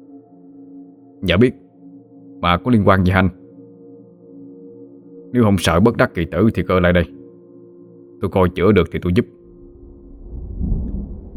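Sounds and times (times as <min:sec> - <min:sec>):
speech: 0:01.2 - 0:01.6, 0:02.4 - 0:03.4, 0:05.3 - 0:07.2, 0:08.2 - 0:09.4
thunder rumbling: 0:09.6 - 0:11.3.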